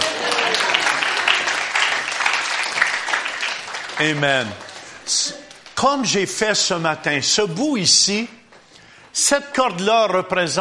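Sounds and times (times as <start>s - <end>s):
audience applause: 0.0s - 5.4s
speech: 4.0s - 8.4s, 9.2s - 10.6s.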